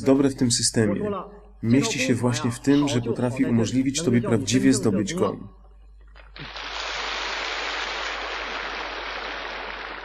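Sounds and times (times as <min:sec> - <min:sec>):
speech: 0:00.0 - 0:05.6, 0:06.4 - 0:06.6
audience applause: 0:06.4 - 0:10.0.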